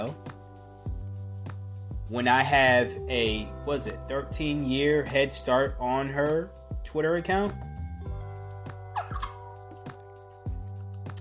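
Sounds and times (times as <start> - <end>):
speech: 2.1 - 7.7
water bottle squeaking while sipping: 9.0 - 9.5.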